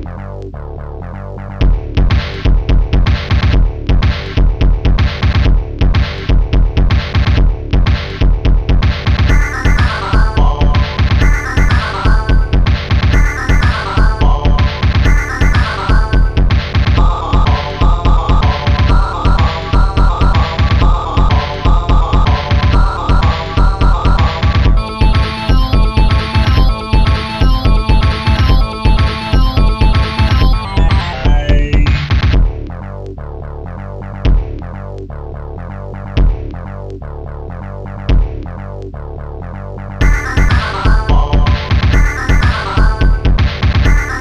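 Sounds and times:
Latin beat: 0:01.6 - 0:32.5, 0:40.0 - 0:44.1.

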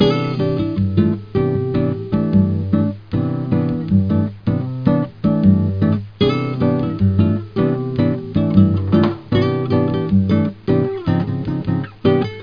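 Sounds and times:
bossa nova music: 0:00.0 - 0:12.4.

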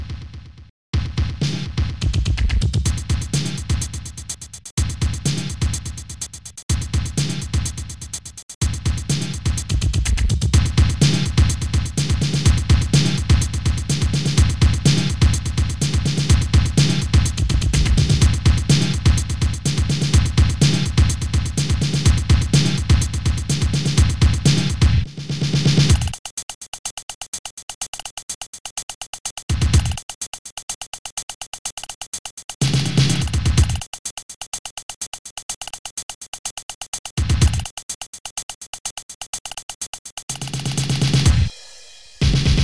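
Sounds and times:
drum solo: 0:01.0 - 0:26.3, 0:28.7 - 0:30.3, 0:31.1 - 0:34.3, 0:36.9 - 0:37.8, 0:39.5 - 0:42.6.

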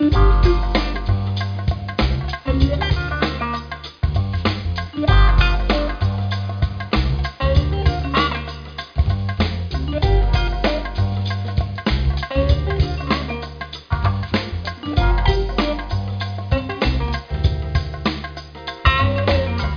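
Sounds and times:
jazz music: 0:00.0 - 0:19.7.

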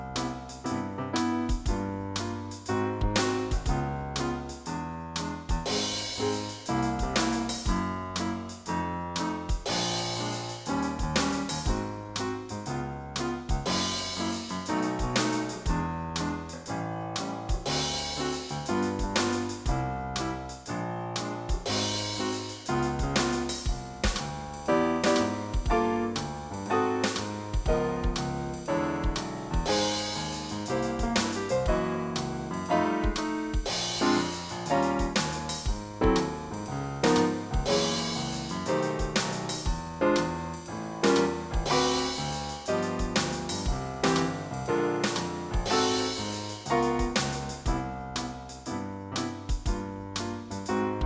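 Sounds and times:
blues music: 0:00.2 - 0:04.7, 0:05.7 - 0:12.5, 0:13.2 - 0:20.4, 0:21.1 - 0:51.0.

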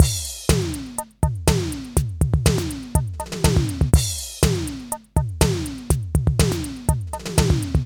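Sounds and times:
80s electro drum kit: 0:00.0 - 0:07.8.

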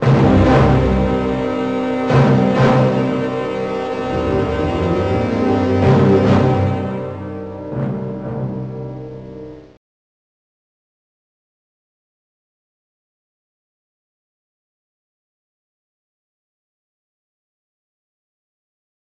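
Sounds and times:
pumping classic music: 0:00.0 - 0:06.7.

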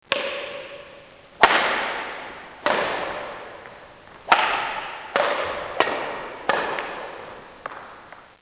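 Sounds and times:
badminton play: 0:00.1 - 0:08.2.

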